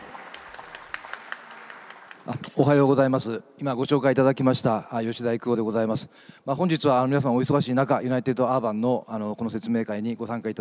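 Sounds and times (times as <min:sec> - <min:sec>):
audience applause welcoming a speaker: 0:00.0 - 0:03.0
speech: 0:02.3 - 0:10.5.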